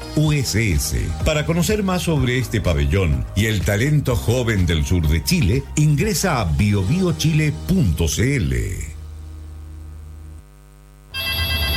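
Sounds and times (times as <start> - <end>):
speech: 0.2 - 8.9
low hum: 8.8 - 11.7
intercom door phone buzzing: 9.6 - 11.7.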